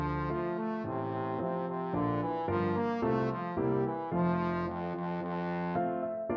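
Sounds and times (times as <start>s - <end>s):
trombone: 0.0s - 6.2s.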